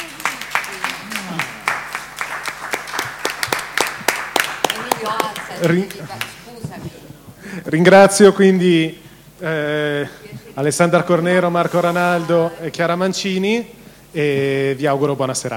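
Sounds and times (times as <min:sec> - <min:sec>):
audience applause: 0:00.0 - 0:06.4
speech: 0:05.0 - 0:06.9, 0:07.5 - 0:15.5.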